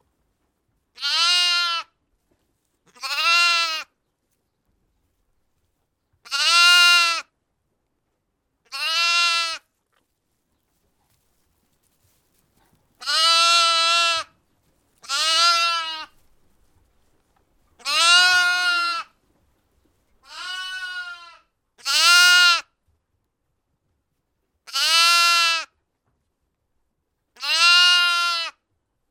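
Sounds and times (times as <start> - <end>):
lamb bleating: 1.0 - 1.9, 2.9 - 3.9, 6.3 - 7.2, 8.7 - 9.6, 13.0 - 14.3, 15.0 - 16.2, 17.8 - 19.1, 20.2 - 22.6, 24.7 - 25.7, 27.4 - 28.6.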